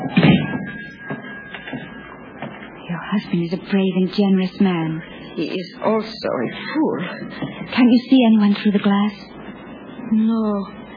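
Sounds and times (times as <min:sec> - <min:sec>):
door being closed with a soft dull thud: 0:00.0 - 0:00.8
speech: 0:03.2 - 0:09.3, 0:10.1 - 0:10.8.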